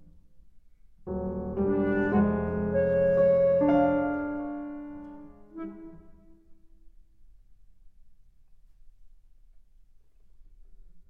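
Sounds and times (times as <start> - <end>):
flute miniatures: 1.1 - 6.8.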